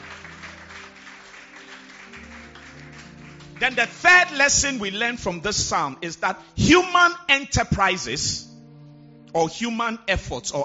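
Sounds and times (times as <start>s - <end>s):
crowd clapping: 0.0s - 4.8s
speech: 3.6s - 8.5s, 9.3s - 10.6s.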